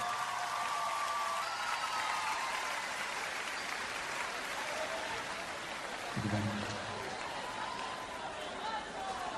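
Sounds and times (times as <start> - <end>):
audience applause: 0.0 - 9.2
speech: 6.2 - 6.8.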